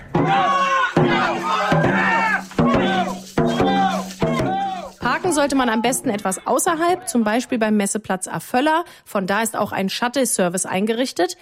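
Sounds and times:
spectators cheering on dragon boat teams: 0:00.0 - 0:07.6
speech: 0:05.4 - 0:11.4.

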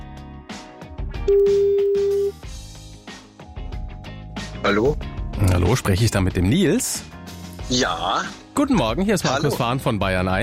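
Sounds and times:
upbeat music: 0:00.0 - 0:10.4
speech: 0:01.3 - 0:01.6, 0:04.7 - 0:10.4
telephone ringing tone: 0:01.3 - 0:02.4.

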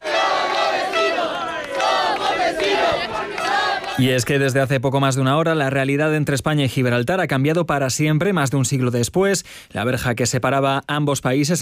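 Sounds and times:
crowd cheering and shouting in celebration as a border fence comes down: 0:00.0 - 0:04.3
speech: 0:04.0 - 0:11.6.

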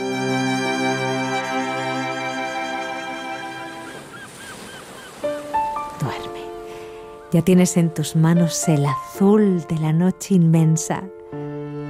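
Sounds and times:
ocean waves: 0:00.0 - 0:09.2
seagull cries: 0:01.3 - 0:05.8
speech: 0:07.3 - 0:11.2.

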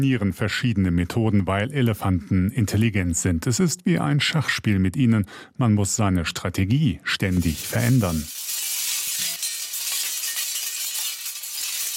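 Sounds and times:
speech: 0:00.0 - 0:08.4
metal strips rattling in the wind: 0:07.3 - 0:11.9.

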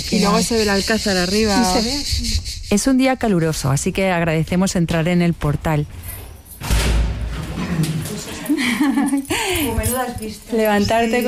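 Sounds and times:
speech: 0:00.1 - 0:06.7, 0:10.0 - 0:11.2
door being opened: 0:06.2 - 0:08.2
laughter: 0:07.6 - 0:09.7.

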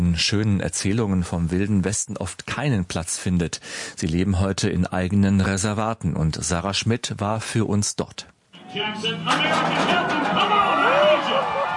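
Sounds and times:
speech: 0:00.1 - 0:10.6
rodeo crowd cheering: 0:08.6 - 0:11.7
rodeo metal gate banging open: 0:09.0 - 0:11.1.

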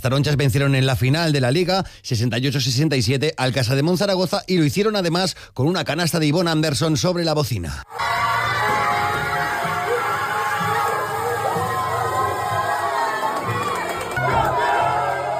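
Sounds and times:
speech: 0:00.0 - 0:08.5
players cheering and celebrating in a locker room: 0:07.9 - 0:15.3.

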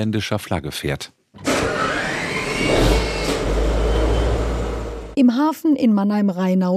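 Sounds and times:
speech: 0:00.0 - 0:01.7, 0:05.2 - 0:06.7
sixty-year-old Dutch-flagged cargo ship diesel engine roaring in a Mannheim harbor: 0:01.5 - 0:05.2.

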